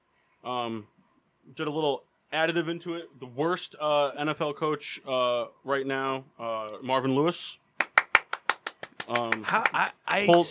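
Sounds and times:
speech: 0.4s - 7.6s, 9.1s - 10.5s
clapping: 7.8s - 10.5s.

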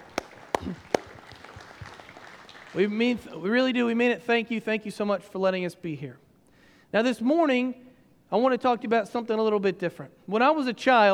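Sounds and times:
audience applause: 0.0s - 3.4s
speech: 0.6s - 0.9s, 2.8s - 6.2s, 6.9s - 11.1s.

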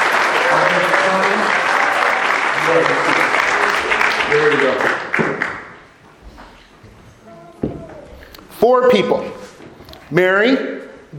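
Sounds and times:
audience applause: 0.0s - 5.9s
speech: 2.7s - 3.2s, 9.0s - 9.3s, 10.1s - 11.1s.

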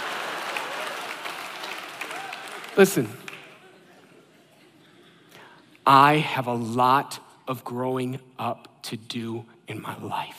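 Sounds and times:
audience clapping: 0.0s - 3.8s
speech: 2.8s - 3.3s, 5.9s - 10.3s
faint crowd murmur: 3.4s - 5.8s.

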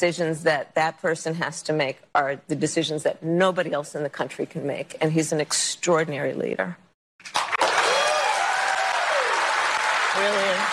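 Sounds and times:
speech: 0.0s - 7.4s
audience applause: 7.2s - 10.7s.

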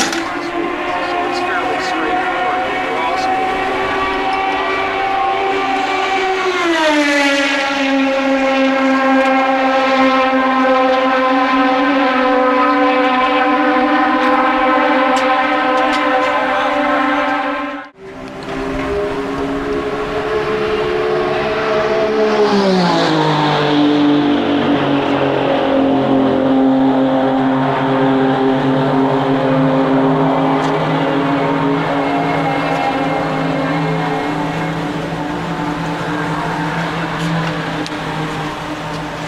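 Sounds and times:
CART IndyCar 2.65-liter turbocharged V8 engines roaring at Phoenix International Raceway: 0.0s - 39.2s.

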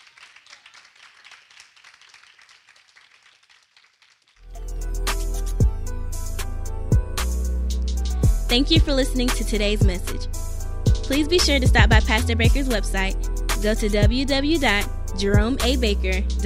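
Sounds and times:
audience hand clapping: 0.0s - 4.5s
loud music: 4.5s - 16.4s
speech: 8.5s - 10.5s, 11.1s - 16.4s.

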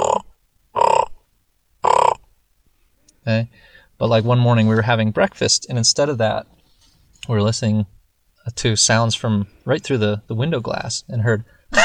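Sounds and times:
raven croaking: 0.0s - 1.2s, 1.8s - 2.3s
speech: 3.3s - 6.6s, 7.2s - 11.8s.

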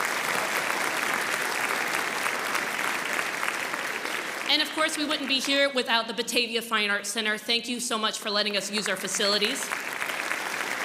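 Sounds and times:
audience round of applause: 0.0s - 5.6s, 8.8s - 10.8s
speech: 4.5s - 10.0s.

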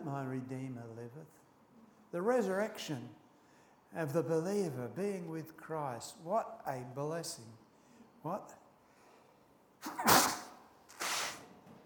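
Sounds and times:
speech: 0.0s - 1.5s, 2.1s - 3.2s, 3.9s - 7.6s, 8.2s - 8.6s
sneeze: 9.8s - 11.5s.

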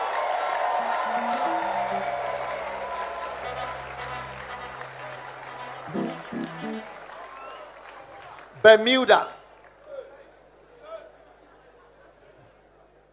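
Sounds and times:
audience clapping: 0.0s - 9.9s
speech: 8.6s - 9.3s.

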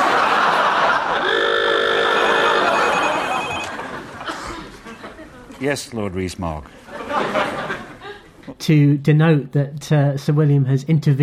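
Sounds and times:
laughter: 0.0s - 5.5s, 6.9s - 8.4s
alarm bell ringing in a studio: 1.2s - 3.8s
speech: 5.6s - 7.6s, 8.6s - 11.2s.

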